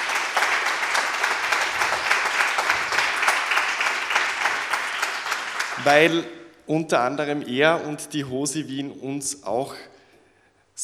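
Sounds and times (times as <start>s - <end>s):
audience applause: 0.0s - 6.3s
speech: 5.8s - 9.9s.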